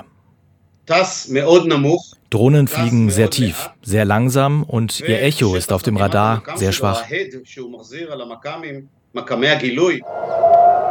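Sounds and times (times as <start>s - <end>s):
speech: 0.9s - 10.5s
air raid siren: 10.0s - 10.8s.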